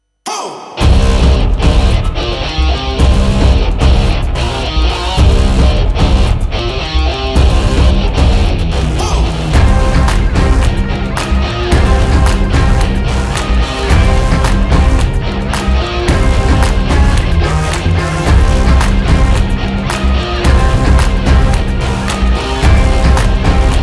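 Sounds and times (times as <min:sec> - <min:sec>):
powerful anthem: 0:00.3 - 0:23.8.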